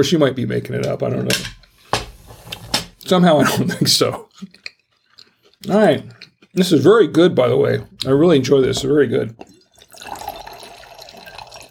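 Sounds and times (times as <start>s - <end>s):
speech: 0.0s - 1.6s, 3.1s - 4.6s, 5.6s - 10.2s
liquid pouring into a glass: 9.4s - 11.6s.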